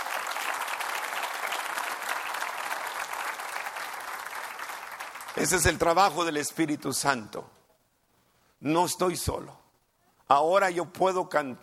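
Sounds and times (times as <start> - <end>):
audience applause: 0.0 - 5.8
speech: 5.4 - 7.6, 8.6 - 9.6, 10.3 - 11.6.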